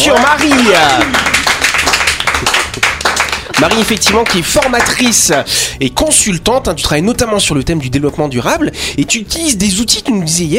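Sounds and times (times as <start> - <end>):
applause for the guest: 0.0 - 5.5
speech: 3.6 - 10.5.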